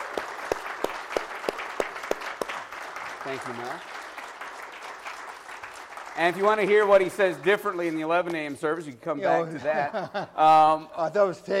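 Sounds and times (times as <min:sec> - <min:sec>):
audience round of applause: 0:00.0 - 0:07.4
speech: 0:03.3 - 0:04.0, 0:06.2 - 0:11.5
laughter: 0:09.3 - 0:10.8.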